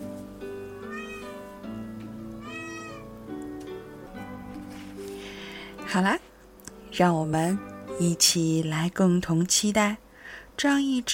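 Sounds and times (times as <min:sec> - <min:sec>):
kitten meowing: 0:00.8 - 0:01.5, 0:02.4 - 0:03.2
speech: 0:05.9 - 0:06.3, 0:07.0 - 0:10.0, 0:10.6 - 0:11.1.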